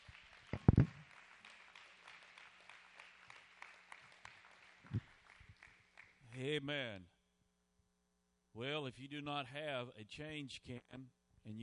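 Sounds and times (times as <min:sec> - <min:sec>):
audience applause: 0:00.0 - 0:06.1
speech: 0:06.4 - 0:07.1, 0:08.6 - 0:11.6.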